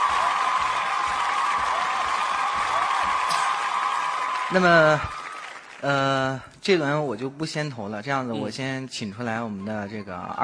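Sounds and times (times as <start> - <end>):
audience applause: 0.0 - 6.4
speech: 4.5 - 5.2, 5.8 - 10.4.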